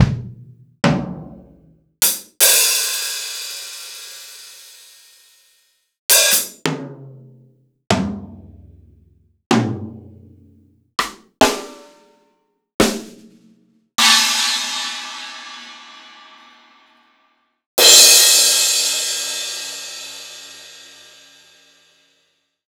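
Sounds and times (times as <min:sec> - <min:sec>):
Akai MPC2500 acoustic drum kit: 0:00.0 - 0:05.5, 0:06.1 - 0:07.3, 0:07.9 - 0:10.4, 0:11.0 - 0:12.1, 0:12.8 - 0:16.4, 0:17.8 - 0:21.0.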